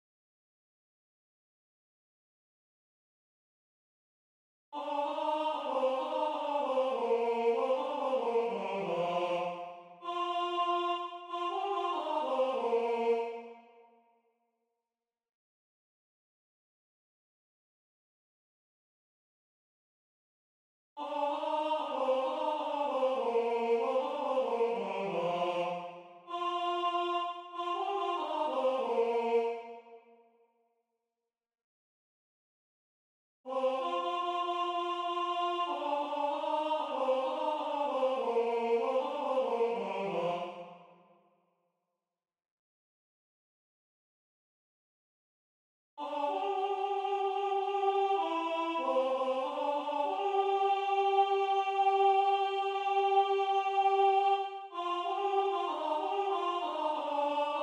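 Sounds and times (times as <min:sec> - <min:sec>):
tenor singing: 0:04.8 - 0:13.5, 0:21.0 - 0:29.7, 0:33.5 - 0:40.6, 0:46.0 - 0:57.6.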